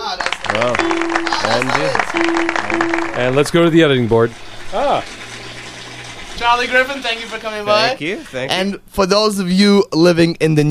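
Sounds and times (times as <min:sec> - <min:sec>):
audience applause: 0:00.0 - 0:08.4
speech: 0:00.5 - 0:05.2, 0:06.4 - 0:10.6.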